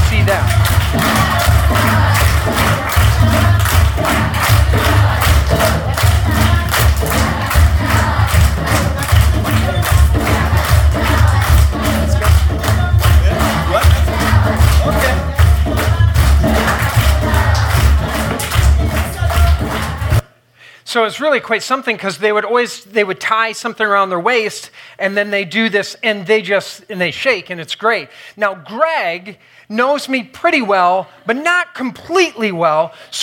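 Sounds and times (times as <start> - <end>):
driving steady drumbeats of a welcome dance in Uganda's Mityana region: 0.0 - 20.2
villagers singing and shouting in Uganda's Mityana region: 0.0 - 20.2
speech: 21.0 - 33.2.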